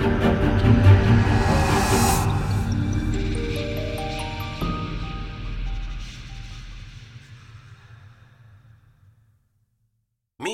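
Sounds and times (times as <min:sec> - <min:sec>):
magical winds stinger: 0:00.2 - 0:06.5.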